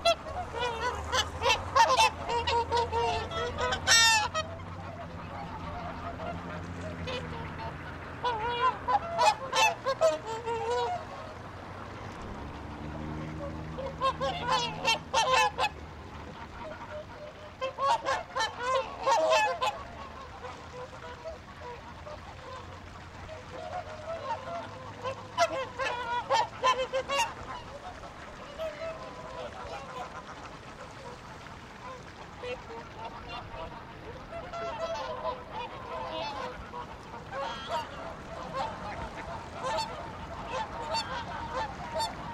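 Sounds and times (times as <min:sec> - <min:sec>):
geese and ducks honking at a pond in Reykjavik: 0:00.0 - 0:42.3.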